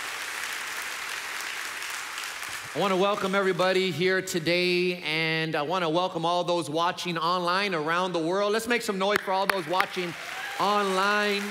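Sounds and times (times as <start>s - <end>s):
church congregation applauding: 0.0s - 3.7s, 9.0s - 11.5s
speech: 2.7s - 11.5s.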